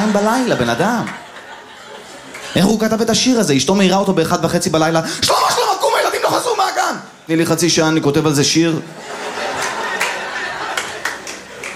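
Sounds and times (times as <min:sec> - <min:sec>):
speech: 0:00.0 - 0:01.2, 0:02.5 - 0:05.4, 0:06.3 - 0:09.1
laughter: 0:00.0 - 0:02.8, 0:08.9 - 0:11.7
crowd clapping: 0:00.1 - 0:01.5, 0:02.2 - 0:02.7, 0:09.4 - 0:11.7.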